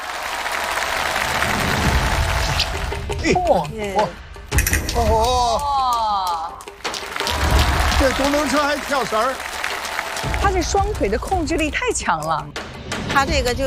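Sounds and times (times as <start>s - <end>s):
audience applause: 0.0s - 3.1s, 5.6s - 11.3s
speech: 3.2s - 4.2s, 5.0s - 5.9s, 8.0s - 9.5s, 10.2s - 13.6s.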